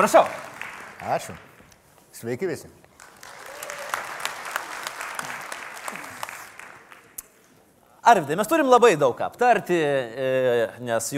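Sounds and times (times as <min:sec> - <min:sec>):
speech: 0:00.0 - 0:00.4, 0:01.0 - 0:01.5, 0:02.2 - 0:02.8, 0:08.0 - 0:11.1
audience applause welcoming a guest: 0:00.0 - 0:01.5, 0:03.0 - 0:07.2.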